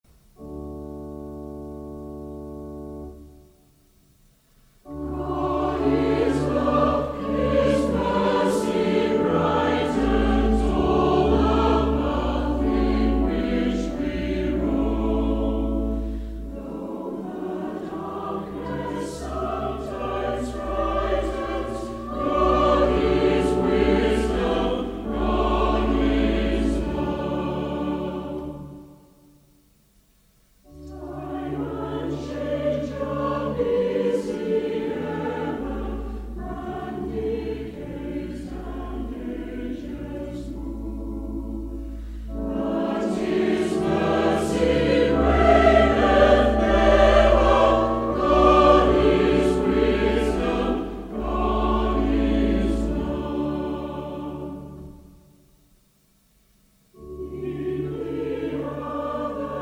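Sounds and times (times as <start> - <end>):
choir singing hymns: 4.8 - 29.4, 30.6 - 55.3, 57.0 - 59.6.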